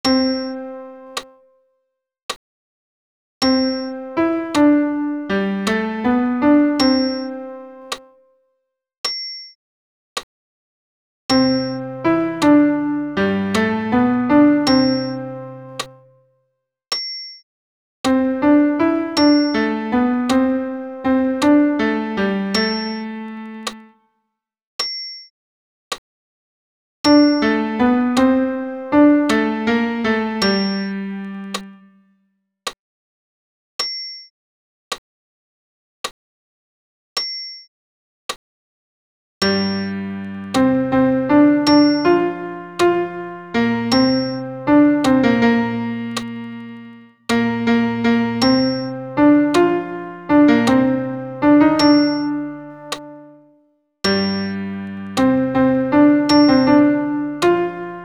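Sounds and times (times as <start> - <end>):
piano accompaniment for a Sanctus: 0.0 - 1.4, 3.4 - 8.1, 11.3 - 16.2, 18.0 - 24.0, 27.1 - 32.1, 39.4 - 58.0.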